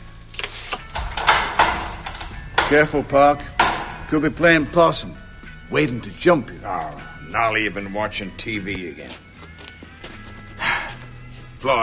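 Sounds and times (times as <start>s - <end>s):
keys jangling as they are handed over in a jail cellblock: 0.0s - 2.7s
speech: 2.7s - 3.5s, 4.1s - 9.3s, 11.6s - 11.8s.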